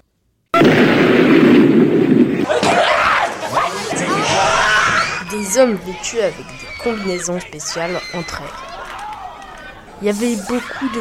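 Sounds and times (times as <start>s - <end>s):
laboratory door exploding: 0.6s - 5.3s
laughter: 2.4s - 10.9s
speech: 5.5s - 8.7s, 10.0s - 10.9s.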